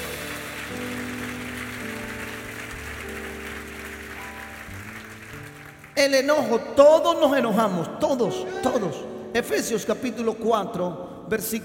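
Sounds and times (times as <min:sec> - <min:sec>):
audience applause: 0:00.0 - 0:06.0
speech: 0:06.0 - 0:11.6.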